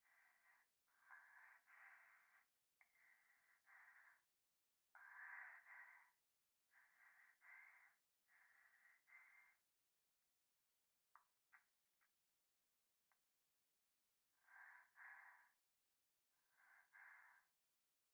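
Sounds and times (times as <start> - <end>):
breathing pressed against the right ear in a bath: 0.0 - 4.3, 5.0 - 9.6, 14.4 - 15.6, 16.4 - 17.6.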